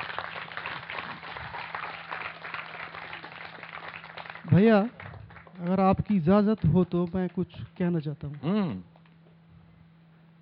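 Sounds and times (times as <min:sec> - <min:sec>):
audience applause cheering a presentation on research: 0:00.0 - 0:07.4
speech: 0:04.5 - 0:05.0, 0:05.6 - 0:08.9.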